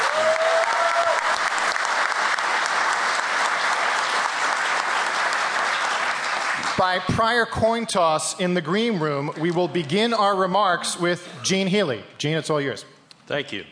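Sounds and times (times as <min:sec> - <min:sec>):
audience applause welcoming a panelist to a panel discussion: 0:00.0 - 0:07.3
speech: 0:06.8 - 0:13.6.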